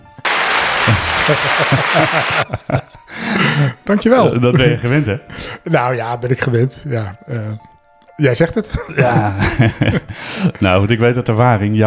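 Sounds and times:
crowd applause: 0:00.0 - 0:02.5
laughter: 0:00.6 - 0:03.8, 0:08.7 - 0:10.7
speech: 0:00.9 - 0:11.8.

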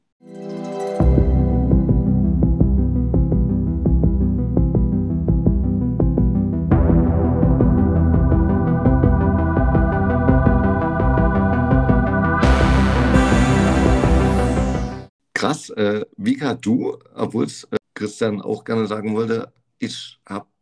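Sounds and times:
instrumental synth TV series soundtrack music: 0:00.2 - 0:15.1
speech: 0:15.7 - 0:20.5.

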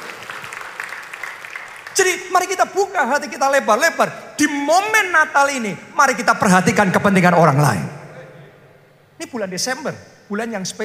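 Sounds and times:
audience applause: 0:00.0 - 0:02.2
speech: 0:02.0 - 0:07.9, 0:09.2 - 0:10.8.

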